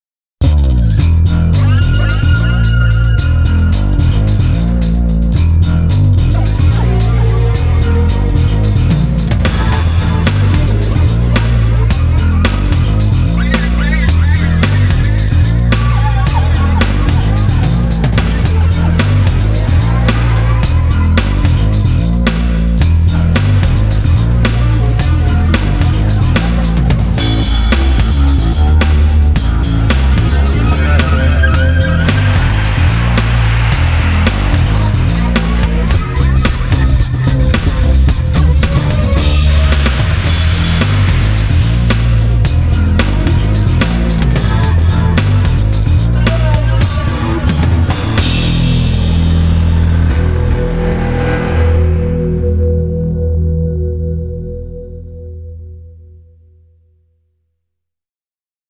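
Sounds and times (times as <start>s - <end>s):
moaning electric bass: 0.4s - 56.8s
laughter: 6.3s - 47.8s.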